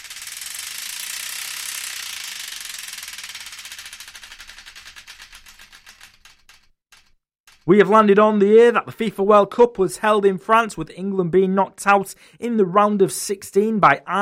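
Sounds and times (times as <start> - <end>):
prize wheel spinning and clicking: 0.0 - 9.2
speech: 7.7 - 14.1.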